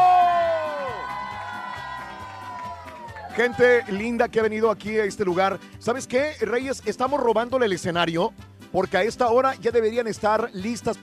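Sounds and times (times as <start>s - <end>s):
cheering voices: 0.0s - 4.0s
live audience shouting: 0.0s - 4.0s
speech: 3.4s - 11.0s.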